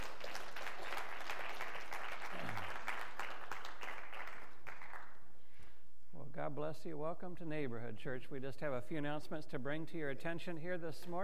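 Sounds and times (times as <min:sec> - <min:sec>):
audience applause in a large room: 0:00.0 - 0:05.1
speech: 0:06.4 - 0:11.2.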